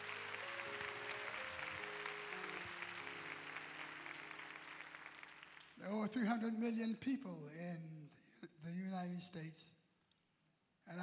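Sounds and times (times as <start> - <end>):
audience clapping hands: 0.0 - 6.5
speech: 5.8 - 8.0, 8.6 - 9.8.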